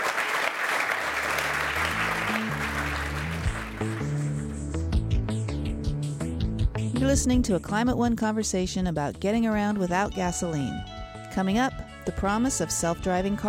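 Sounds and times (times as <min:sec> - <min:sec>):
audience clapping: 0:00.0 - 0:04.8
music bed: 0:01.0 - 0:13.4
speech: 0:03.8 - 0:04.1, 0:07.0 - 0:13.4.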